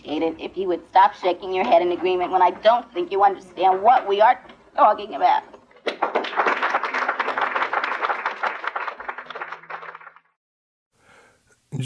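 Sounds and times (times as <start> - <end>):
speech: 0.1 - 6.1
audience applause: 5.8 - 10.4.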